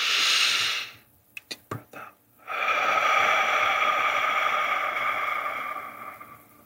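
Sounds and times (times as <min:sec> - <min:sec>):
deep breath in during a guided breathing exercise: 0:00.0 - 0:01.0, 0:02.4 - 0:06.6.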